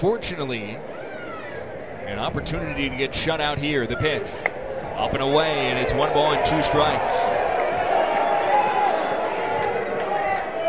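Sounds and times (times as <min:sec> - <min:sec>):
speech: 0:00.0 - 0:01.0, 0:02.1 - 0:07.4
large home crowd booing and groaning: 0:04.6 - 0:10.6.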